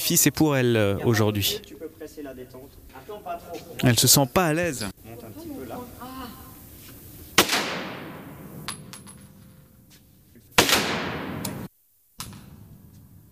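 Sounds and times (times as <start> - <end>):
speech: 0.1 - 6.4
gunshots from a loaded firearm: 7.4 - 8.7, 10.6 - 11.7.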